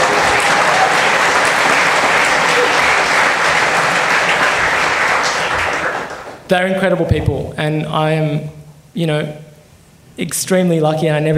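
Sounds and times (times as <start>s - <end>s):
audience applause: 0.0s - 6.4s
speech: 6.5s - 9.4s, 10.2s - 11.3s.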